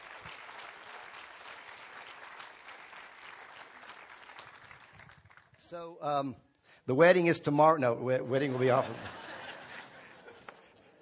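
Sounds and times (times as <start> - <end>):
audience applause: 0.0 - 5.6
speech: 5.7 - 9.2
laughter: 8.2 - 10.9.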